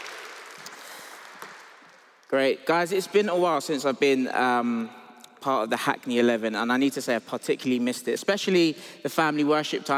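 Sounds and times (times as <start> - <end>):
audience applause: 0.0 - 2.1
speech: 2.3 - 9.9.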